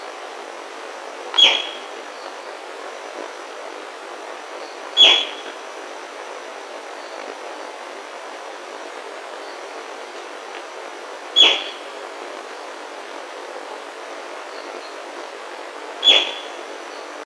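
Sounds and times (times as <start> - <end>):
background hiss: 0.0 - 17.2
bird sharp calls: 1.4 - 2.4, 4.6 - 5.6, 11.4 - 12.8, 16.0 - 17.2.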